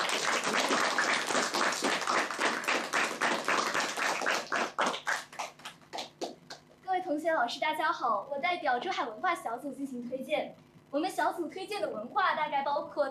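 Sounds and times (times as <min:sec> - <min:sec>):
audience applause: 0:00.0 - 0:06.4
speech: 0:07.4 - 0:13.0.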